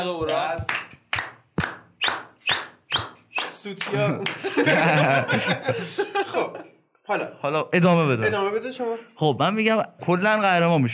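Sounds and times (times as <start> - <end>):
speech: 0.0 - 0.8, 3.6 - 10.9
hand clapping: 0.2 - 5.5
laughter: 3.8 - 6.8.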